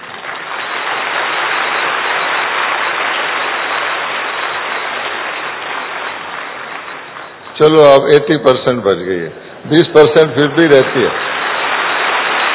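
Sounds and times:
large crowd clapping: 0.0 - 7.9, 10.4 - 12.5
speech: 7.6 - 11.3.

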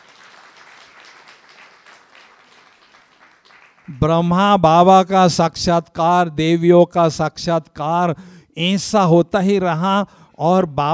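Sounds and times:
audience clapping: 0.0 - 4.4
speech: 3.9 - 10.9.

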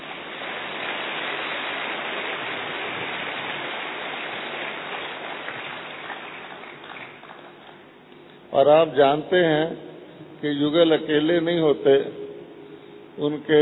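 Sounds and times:
crowd audience applause: 0.0 - 7.8
speech: 8.6 - 12.2, 13.2 - 13.6.

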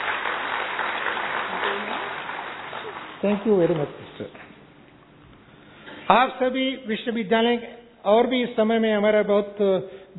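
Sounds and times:
audience clapping loudly: 0.0 - 4.0
speech: 3.2 - 4.4, 6.1 - 10.1.

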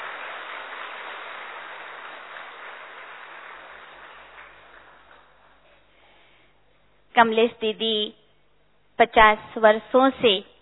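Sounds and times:
audience clapping loudly in welcome: 0.0 - 5.9
speech: 7.2 - 8.2, 9.0 - 10.5.

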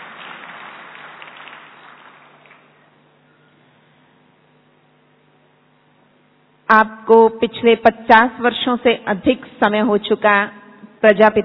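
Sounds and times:
audience clapping in welcome at a Brahma Kumaris gathering: 0.0 - 2.9
speech: 6.7 - 11.4.

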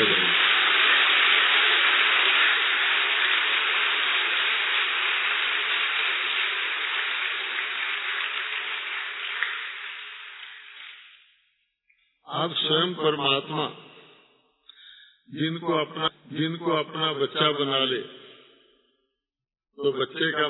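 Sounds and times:
audience clapping loudly: 0.0 - 11.2
speech: 12.4 - 13.8, 15.3 - 18.2, 19.8 - 20.4.

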